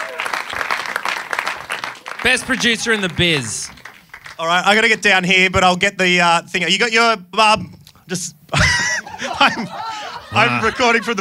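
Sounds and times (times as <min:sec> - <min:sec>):
small room audience clapping: 0:00.0 - 0:05.0
speech: 0:02.2 - 0:03.8, 0:04.4 - 0:08.4, 0:09.3 - 0:11.1
laughter: 0:08.5 - 0:11.1.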